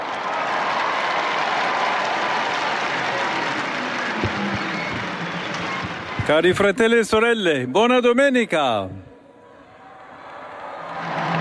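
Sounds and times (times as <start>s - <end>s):
large crowd clapping: 0.0s - 7.4s, 10.2s - 11.4s
large crowd cheering: 0.0s - 8.1s, 9.2s - 11.4s
speech: 6.3s - 9.0s.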